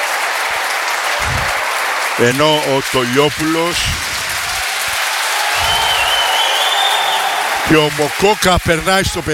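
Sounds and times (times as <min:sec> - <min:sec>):
football stadium crowd applauding a substitute: 0:00.0 - 0:09.3
low thuds: 0:01.2 - 0:01.6
speech: 0:02.2 - 0:04.2, 0:07.7 - 0:09.3.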